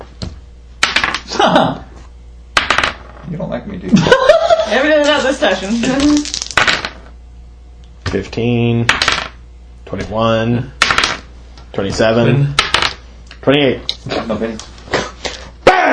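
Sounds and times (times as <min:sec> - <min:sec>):
speech: 0:01.4 - 0:01.8, 0:03.3 - 0:06.4, 0:08.1 - 0:09.2, 0:09.9 - 0:10.8, 0:11.8 - 0:12.6, 0:13.4 - 0:14.7
dice clattering across a hard tabletop: 0:02.6 - 0:03.2, 0:05.3 - 0:07.1, 0:08.9 - 0:09.4, 0:10.8 - 0:11.2, 0:12.6 - 0:13.0
laughter: 0:03.9 - 0:04.9.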